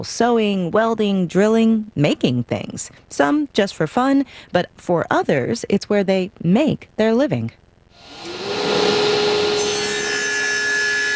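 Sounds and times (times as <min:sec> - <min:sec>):
speech: 0:00.0 - 0:08.6
sawing wood in a wood shop: 0:08.0 - 0:11.1.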